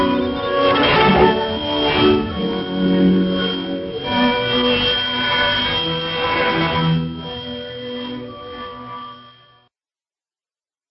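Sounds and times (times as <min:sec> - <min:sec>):
radio interval signal: 0:00.0 - 0:07.4.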